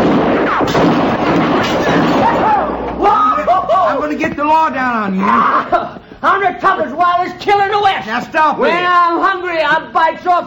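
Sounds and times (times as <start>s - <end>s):
Texas cowboys firing guns: 0.0s - 3.7s
noisy commotion: 0.0s - 10.4s
speech: 5.0s - 5.8s, 6.5s - 10.4s.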